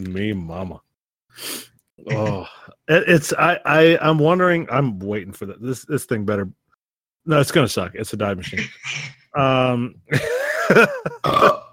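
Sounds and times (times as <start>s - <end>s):
speech: 0.0s - 6.6s, 7.2s - 11.6s
burp: 11.2s - 11.7s.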